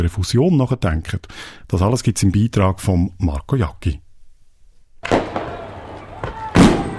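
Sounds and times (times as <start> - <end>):
speech: 0.0 - 4.0
fireworks exploding: 5.0 - 6.9.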